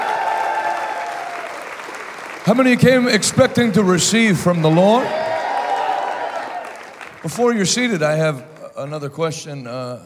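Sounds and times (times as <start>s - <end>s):
audience hand clapping: 0.0s - 8.8s
speech: 2.4s - 5.3s, 7.2s - 10.0s.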